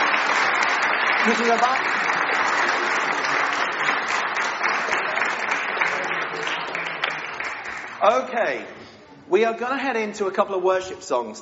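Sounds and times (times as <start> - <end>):
audience applause: 0.0 - 8.4
speech: 1.2 - 2.0, 8.0 - 11.4.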